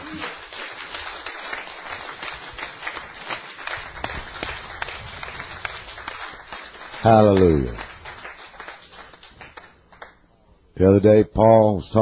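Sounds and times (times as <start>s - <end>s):
audience cheering and clapping: 0.0s - 10.1s
speech: 7.0s - 7.8s, 10.8s - 12.0s.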